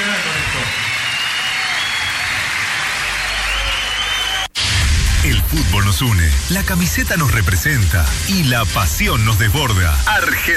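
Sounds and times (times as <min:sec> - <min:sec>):
audience applause: 0:00.0 - 0:04.6
speech: 0:05.5 - 0:10.5.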